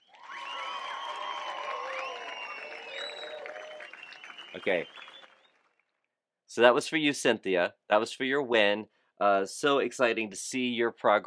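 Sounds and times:
high whoops and whistles: 0.0 - 5.5
canned applause effect: 0.0 - 5.9
speech: 4.6 - 5.1, 6.5 - 11.2.

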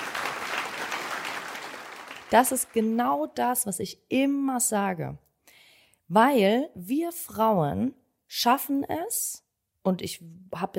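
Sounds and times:
applause sound effect: 0.0 - 3.3
speech: 2.3 - 5.3, 6.1 - 10.7.

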